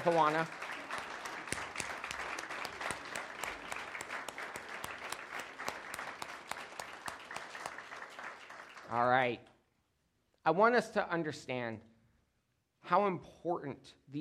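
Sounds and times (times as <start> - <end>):
speech: 0.0 - 0.6, 8.9 - 9.5, 10.4 - 11.9, 12.8 - 14.2
audience applauding: 0.0 - 9.1.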